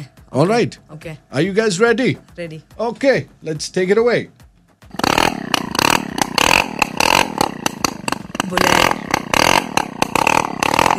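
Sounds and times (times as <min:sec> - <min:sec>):
speech: 0:00.3 - 0:04.4
Luna moped engine starting: 0:04.8 - 0:10.9.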